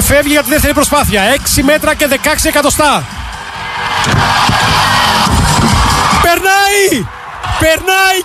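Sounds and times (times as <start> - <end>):
large stadium crowd roaring and applauding: 0.0 - 8.2
speech: 0.1 - 3.2, 6.2 - 8.2
long rising-then-falling shout: 3.4 - 7.6
loud whoops: 3.6 - 8.2.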